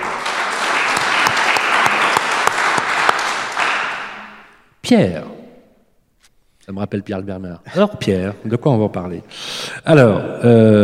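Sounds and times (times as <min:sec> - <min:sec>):
audience applause: 0:00.0 - 0:04.5
speech: 0:04.9 - 0:05.3, 0:06.7 - 0:10.8.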